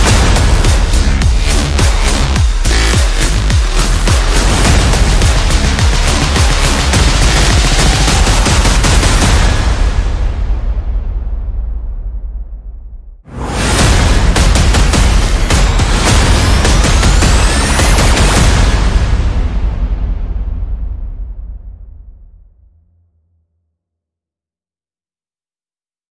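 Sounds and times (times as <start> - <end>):
percussion: 0.0 - 11.6, 13.3 - 21.4
sound effects: 0.0 - 22.0
bass: 0.0 - 23.1.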